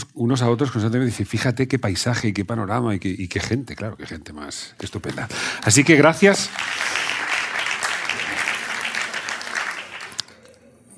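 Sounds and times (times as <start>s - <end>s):
speech: 0.2s - 6.9s
crowd applause: 5.6s - 10.5s.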